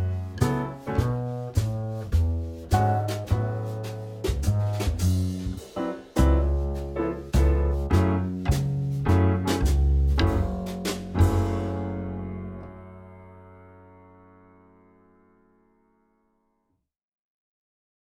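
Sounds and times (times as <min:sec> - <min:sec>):
bar jazz: 0:00.0 - 0:13.8.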